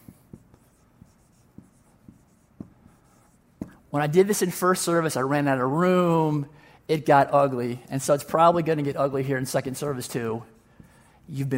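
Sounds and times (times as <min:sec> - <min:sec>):
pen writing on a page: 0:00.0 - 0:03.9, 0:09.6 - 0:11.5
speech: 0:03.9 - 0:10.5, 0:11.3 - 0:11.5.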